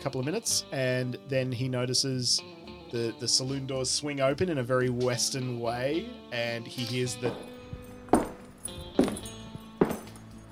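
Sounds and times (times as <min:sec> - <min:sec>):
speech: 0:00.0 - 0:07.5
spurs clanking as two men walk in: 0:06.8 - 0:10.5.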